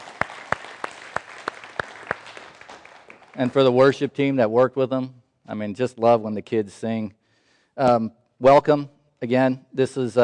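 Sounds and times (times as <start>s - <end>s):
audience applause: 0.0s - 4.0s
speech: 3.4s - 7.2s, 7.8s - 10.2s.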